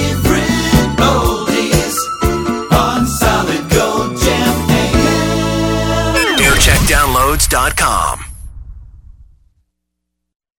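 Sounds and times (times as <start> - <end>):
jingle montage: 0.0 - 8.4.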